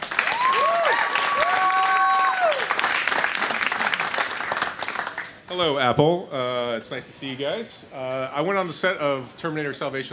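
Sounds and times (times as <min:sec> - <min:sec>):
audience applause: 0:00.0 - 0:05.5
speech: 0:05.5 - 0:10.1.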